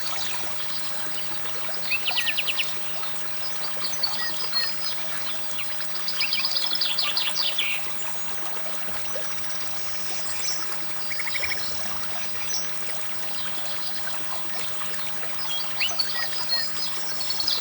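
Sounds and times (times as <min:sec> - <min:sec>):
mountain stream: 0:00.0 - 0:17.5.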